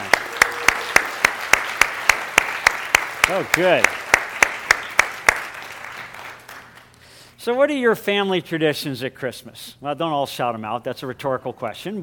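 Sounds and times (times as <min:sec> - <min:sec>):
audience applause: 0:00.0 - 0:06.9
speech: 0:03.3 - 0:04.0, 0:07.4 - 0:12.0.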